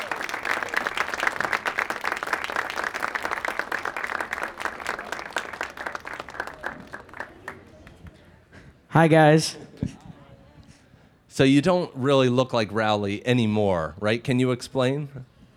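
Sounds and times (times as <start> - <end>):
audience applause: 0.0 - 8.0
speech: 8.9 - 9.6, 11.4 - 15.3.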